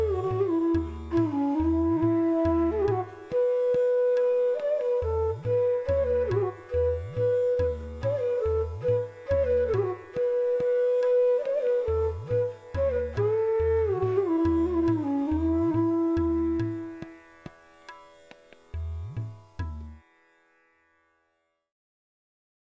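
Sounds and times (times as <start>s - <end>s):
bansuri playing a raga: 0.0s - 17.5s.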